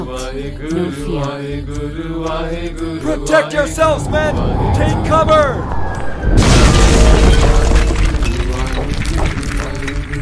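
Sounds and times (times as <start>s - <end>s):
speech: 0.0s - 6.4s
rumbling crackling roar of debris: 3.8s - 10.1s
huge boulder slamming into the ground: 6.2s - 10.1s.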